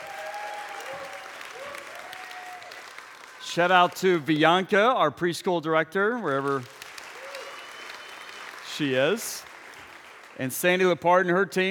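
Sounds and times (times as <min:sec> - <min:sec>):
crowd applause: 0:00.0 - 0:04.4, 0:06.4 - 0:10.5
speech: 0:03.6 - 0:06.8, 0:08.8 - 0:09.5, 0:10.4 - 0:11.6.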